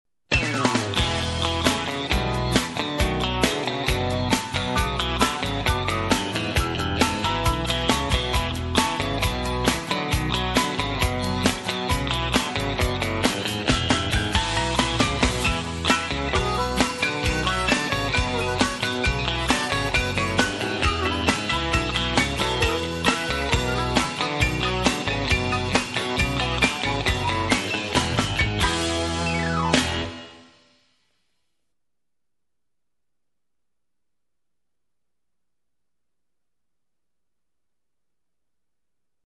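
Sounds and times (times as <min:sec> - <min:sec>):
country rock music: 0:00.3 - 0:30.4.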